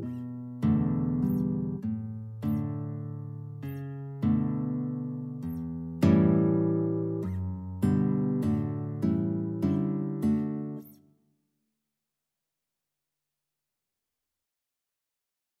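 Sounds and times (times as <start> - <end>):
guitar and flute duet: 0.0 - 11.0.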